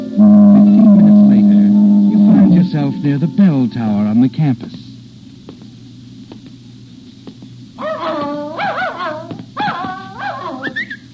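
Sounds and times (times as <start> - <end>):
low steady hum: 0.0 - 8.6
speech: 0.2 - 0.4, 2.8 - 4.8
dog whimpering and yipping: 7.8 - 11.0.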